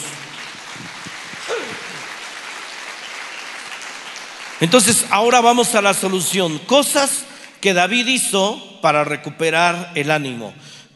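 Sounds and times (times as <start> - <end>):
audience applauding: 0.0 - 6.6
speech: 4.6 - 10.9.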